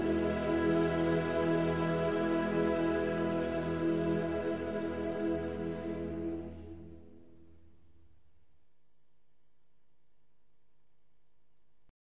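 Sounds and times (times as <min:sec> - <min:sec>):
national anthem: 0:00.0 - 0:07.0.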